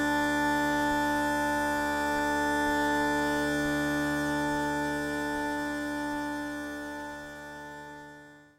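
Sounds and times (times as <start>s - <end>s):
pipe drone: 0.0s - 8.5s.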